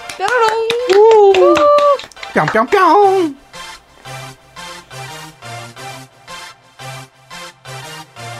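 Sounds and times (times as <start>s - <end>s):
hands clapping: 0.0s - 3.4s
speech: 2.4s - 3.4s.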